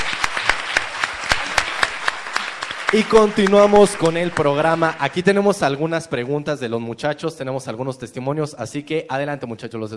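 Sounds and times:
audience applause: 0.0s - 5.8s
speech: 2.9s - 9.9s.

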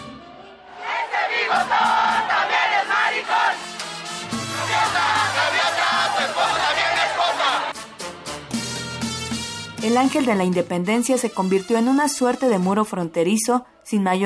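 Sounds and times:
protest crowd chanting: 0.3s - 7.8s
cheering: 0.5s - 3.7s, 4.5s - 7.7s
speech: 9.9s - 14.2s.

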